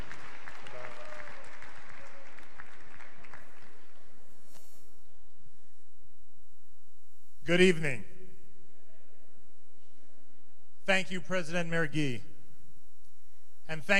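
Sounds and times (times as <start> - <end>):
concert audience applause: 0.0 - 4.2
speech: 7.5 - 8.1, 10.9 - 12.3, 13.7 - 13.9.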